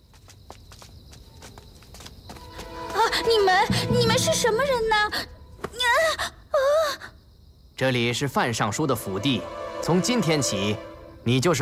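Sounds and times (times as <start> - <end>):
footsteps of a steward and two servants walking in: 0.0 - 5.8
speech: 3.3 - 5.4, 7.8 - 11.5.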